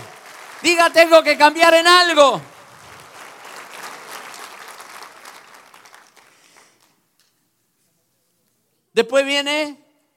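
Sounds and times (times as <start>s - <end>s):
crowd applauding: 0.0s - 7.0s
speech: 0.6s - 2.5s, 9.0s - 9.8s.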